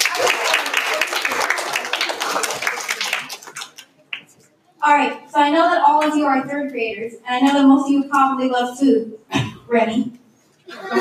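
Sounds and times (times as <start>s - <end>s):
audience applause: 0.0s - 4.3s
speech: 4.9s - 11.0s
laughter: 10.7s - 11.0s.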